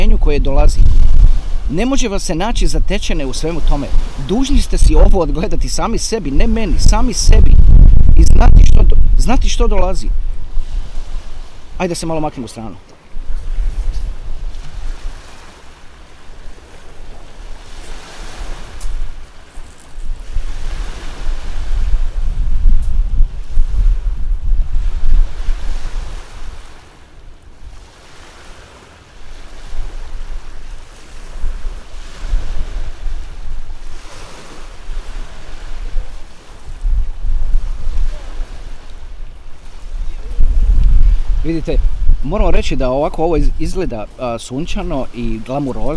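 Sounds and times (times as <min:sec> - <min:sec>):
rolling surf: 0:00.0 - 0:45.9
wind gusting at the seaside: 0:00.0 - 0:45.9
speech: 0:00.3 - 0:01.1, 0:01.7 - 0:10.3, 0:11.8 - 0:12.9, 0:41.6 - 0:45.9.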